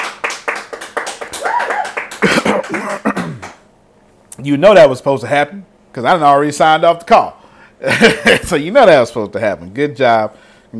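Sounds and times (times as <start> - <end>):
people clapping over a call: 0.0 - 3.6
cheering: 1.2 - 2.2
speech: 2.7 - 3.0, 4.4 - 10.7
laughter: 7.9 - 8.5.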